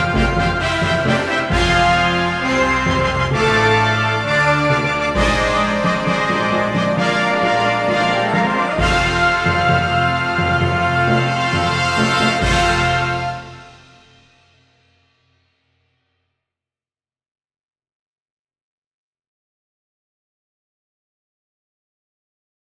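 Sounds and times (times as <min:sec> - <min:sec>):
horns playing note A in fifths: 0:00.0 - 0:14.2.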